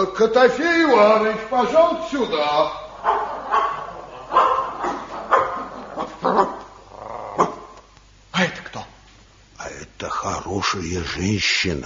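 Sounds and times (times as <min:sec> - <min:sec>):
speech: 0:00.0 - 0:03.4, 0:10.5 - 0:11.8
dog barking: 0:03.0 - 0:06.6.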